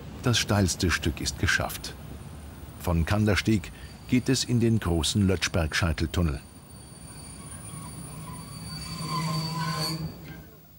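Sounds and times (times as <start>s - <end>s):
train climbing uphill with pusher locomotive: 0.0s - 10.7s
speech: 0.2s - 2.0s, 2.8s - 6.5s
wheel squeal: 6.4s - 10.7s.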